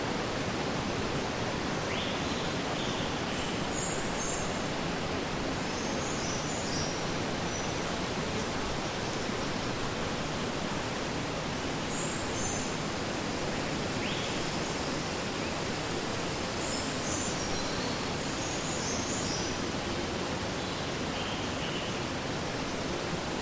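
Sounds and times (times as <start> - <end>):
crickets chirping in an Australian forest: 0.0 - 23.3
wind in forest trees in Australia: 0.0 - 23.3.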